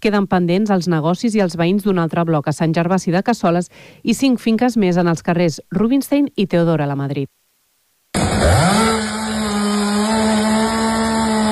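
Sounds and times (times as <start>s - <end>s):
speech: 0.0s - 7.4s
chainsaw during tree cleanup work: 8.1s - 11.5s.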